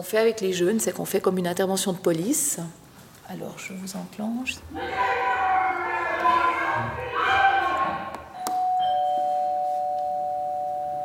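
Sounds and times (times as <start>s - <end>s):
speech: 0.0s - 5.3s
overlapping shouting voices: 4.7s - 8.4s
doorbell ringing at a front door: 8.4s - 11.0s.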